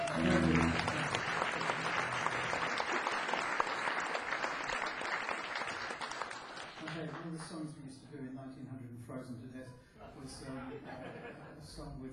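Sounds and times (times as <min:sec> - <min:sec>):
audience applause: 0:00.0 - 0:07.5
laughter: 0:10.0 - 0:11.6
speech: 0:10.0 - 0:12.1.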